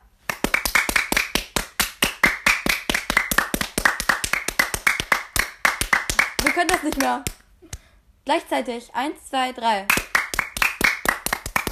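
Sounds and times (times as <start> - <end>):
hands clapping: 0.3 - 7.9, 9.9 - 11.6
speech: 6.5 - 7.4, 8.2 - 10.0.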